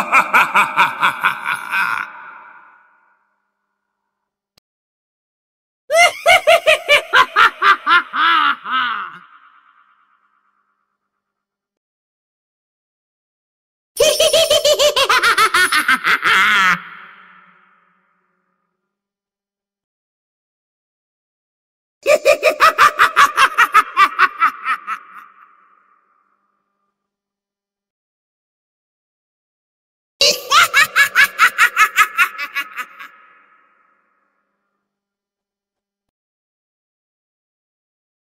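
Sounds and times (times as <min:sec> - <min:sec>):
evil creepy horror laugh: 0:00.0 - 0:03.2, 0:05.9 - 0:10.2, 0:14.0 - 0:17.9, 0:22.0 - 0:26.1, 0:30.2 - 0:34.2.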